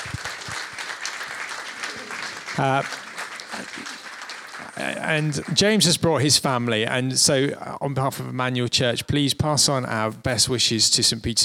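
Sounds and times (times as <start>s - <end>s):
round of applause: 0.0s - 6.3s
speech: 2.6s - 4.0s, 4.6s - 11.4s.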